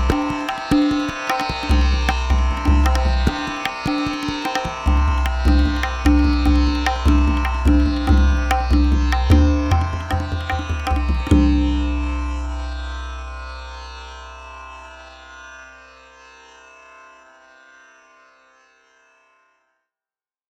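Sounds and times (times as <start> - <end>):
tabla: 0.0 - 15.8.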